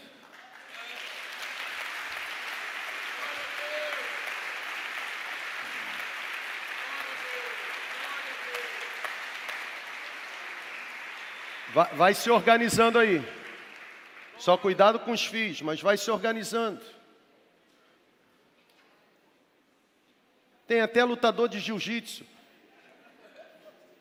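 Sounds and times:
crowd applause in a church: 0.0s - 14.7s
speech: 11.7s - 13.4s, 14.4s - 17.0s, 20.7s - 22.4s.

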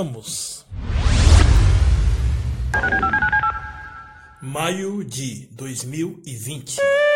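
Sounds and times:
speech: 0.0s - 1.0s, 2.7s - 3.2s, 4.4s - 7.0s
sci-fi time machine powering on with a rushing whoosh and low rumble: 0.7s - 2.8s
warbling two-tone electronic beeps: 2.7s - 4.4s.

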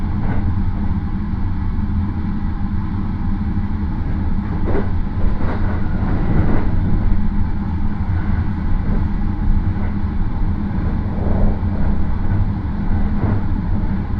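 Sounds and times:
Marine Liner rapid train running on the Yosan Line with heavy low rumble: 0.0s - 14.1s
rattles and clacks: 4.4s - 6.8s.

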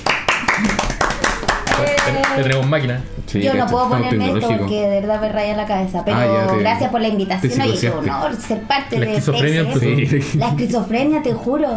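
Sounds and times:
audience applause: 0.0s - 3.0s
speech: 1.8s - 11.7s.

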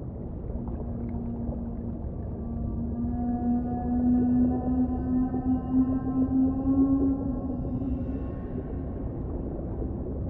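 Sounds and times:
whale moan: 0.3s - 10.2s.

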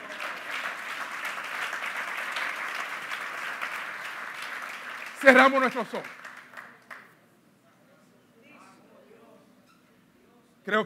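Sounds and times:
audience applause: 0.0s - 7.1s
speech: 5.2s - 6.2s, 10.7s - 10.8s.

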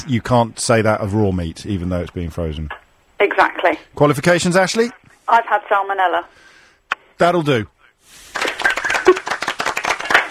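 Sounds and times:
speech: 0.0s - 6.5s, 7.2s - 7.7s
round of applause from a small audience: 8.3s - 10.2s.

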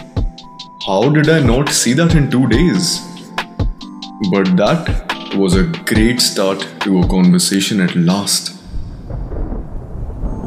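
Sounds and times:
speech: 0.8s - 3.1s, 4.2s - 8.5s
gusting wind: 8.6s - 10.4s
rolling thunder: 8.6s - 10.4s
heavy rain: 8.7s - 10.4s.

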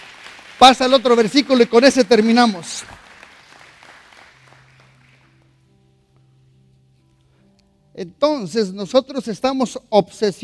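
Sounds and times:
audience applause: 0.0s - 5.4s
speech: 0.6s - 3.0s, 8.0s - 10.4s.

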